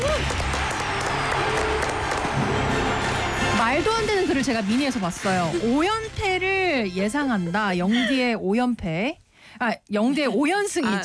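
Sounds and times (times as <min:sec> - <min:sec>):
audience applause: 0:00.0 - 0:05.8
speech: 0:04.4 - 0:11.0.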